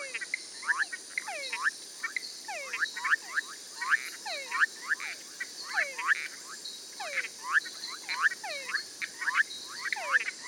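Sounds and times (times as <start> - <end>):
frog and treefrog chorus of short whistled notes: 0.0 - 10.4.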